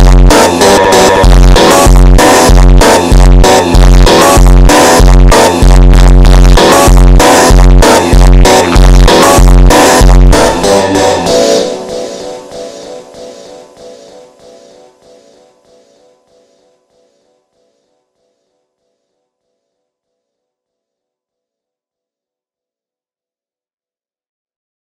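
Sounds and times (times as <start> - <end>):
phonk music: 0.0 - 15.9.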